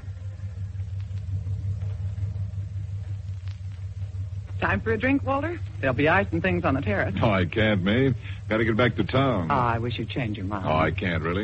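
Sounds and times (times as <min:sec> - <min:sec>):
car engine idling: 0:00.0 - 0:11.4
speech: 0:04.6 - 0:11.4.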